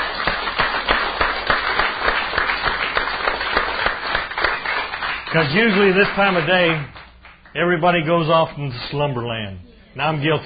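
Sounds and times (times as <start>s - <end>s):
audience clapping hands: 0.0s - 7.8s
speech: 5.3s - 7.0s, 7.6s - 10.4s.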